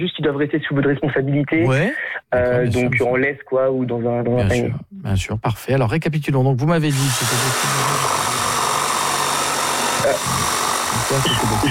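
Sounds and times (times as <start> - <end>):
speech: 0.0 - 8.2, 10.1 - 11.6
power tools whirring during construction work: 6.9 - 11.6.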